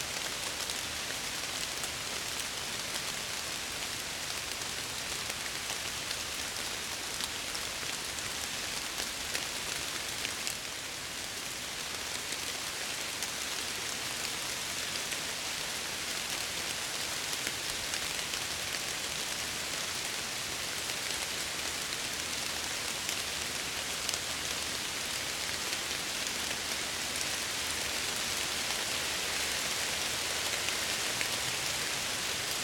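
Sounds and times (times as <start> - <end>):
rain in Ontario: 0.0 - 32.6.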